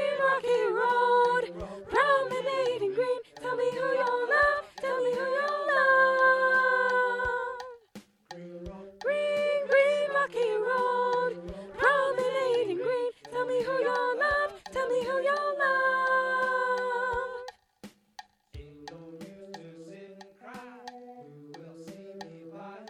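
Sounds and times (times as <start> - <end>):
soprano voice singing a folk song: 0.0 - 7.8, 8.4 - 17.5.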